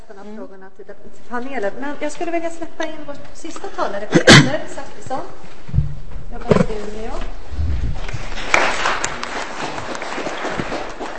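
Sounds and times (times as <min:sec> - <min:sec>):
speech: 0:00.1 - 0:07.4
crowd applauding: 0:08.1 - 0:11.1.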